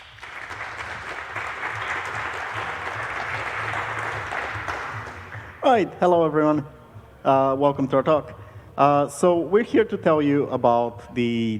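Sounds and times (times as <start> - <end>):
audience applauding speakers at a talk on KiCad add-on tools: 0.0 - 5.8
speech: 5.6 - 11.5.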